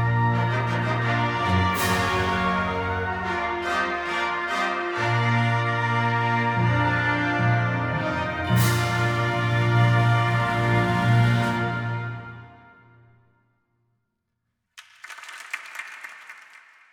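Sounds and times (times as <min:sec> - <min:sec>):
wind symphony fanfare: 0:00.0 - 0:12.8.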